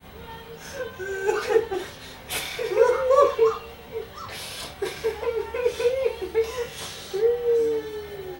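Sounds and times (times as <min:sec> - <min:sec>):
person laughing: 0:01.0 - 0:07.2.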